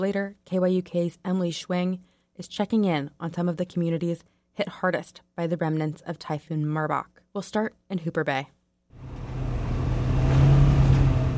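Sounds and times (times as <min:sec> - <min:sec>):
speech: 0:00.0 - 0:08.6
side-by-side off-road vehicle accelerating: 0:09.0 - 0:11.3.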